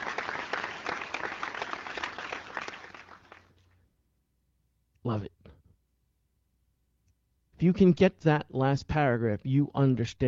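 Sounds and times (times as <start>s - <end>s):
applause: 0.0s - 3.8s
speech: 5.0s - 5.4s, 7.6s - 10.2s.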